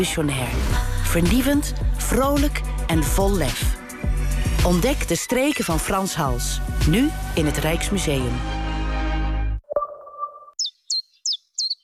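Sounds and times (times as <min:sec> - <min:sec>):
speech: 0:00.0 - 0:03.8, 0:04.6 - 0:08.6
burst of music: 0:00.0 - 0:09.6
chiffchaff singing high chirping notes: 0:10.6 - 0:11.8.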